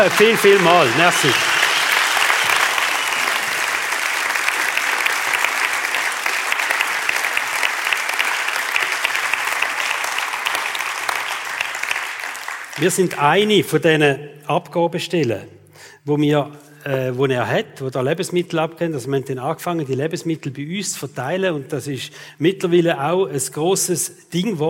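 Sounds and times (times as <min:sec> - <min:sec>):
speech: 0:00.0 - 0:01.6, 0:12.8 - 0:24.6
big sustained round of applause from a crowd: 0:00.0 - 0:13.2.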